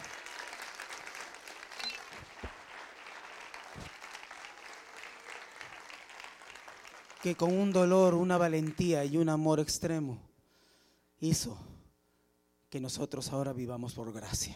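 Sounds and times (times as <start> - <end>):
audience applause: 0.0 - 9.2
speech: 7.2 - 10.3, 11.2 - 11.7, 12.7 - 14.5.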